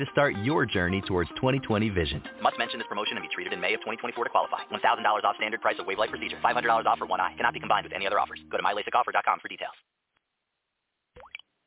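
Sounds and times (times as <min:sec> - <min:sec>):
speech: 0:00.0 - 0:09.9
unaged whiskey dripping through charcoal in Lynchburg Tennessee: 0:11.2 - 0:11.5.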